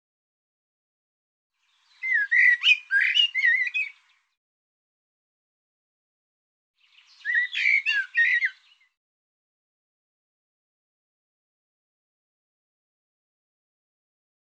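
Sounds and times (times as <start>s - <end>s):
bird song: 1.5s - 4.4s, 6.8s - 9.0s.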